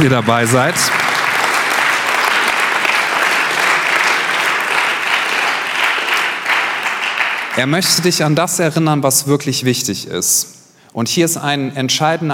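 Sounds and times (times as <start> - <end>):
speech: 0.0 - 1.1, 7.6 - 12.3
audience applause: 0.0 - 8.2.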